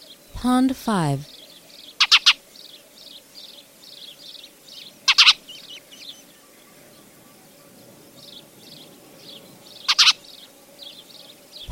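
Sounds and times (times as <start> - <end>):
speech: 0.4 - 1.4
Spanish sparrow chirps: 1.1 - 11.7.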